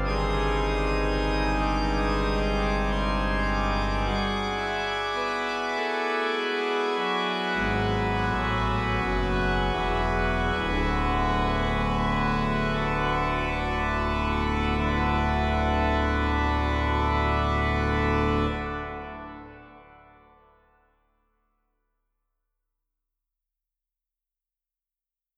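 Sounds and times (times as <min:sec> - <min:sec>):
organ: 0:00.0 - 0:20.7.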